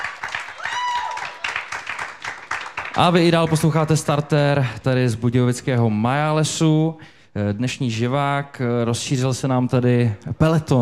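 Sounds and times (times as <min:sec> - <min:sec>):
audience applause: 0:00.0 - 0:03.8
speech: 0:03.0 - 0:10.8.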